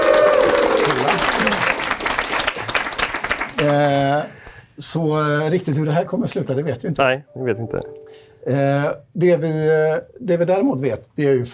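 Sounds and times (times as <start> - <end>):
studio audience applause at a live recording in Stockholm: 0.0 - 4.2
speech: 3.6 - 11.5.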